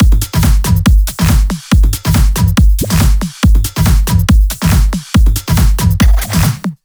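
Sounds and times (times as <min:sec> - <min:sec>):
break beats at 140 BPM: 0:00.0 - 0:06.8.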